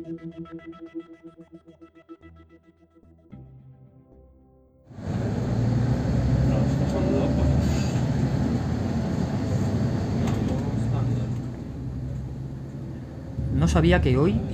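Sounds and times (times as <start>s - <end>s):
bus engine rumbling while driving into the city: 4.9s - 14.5s
speech: 13.7s - 14.5s.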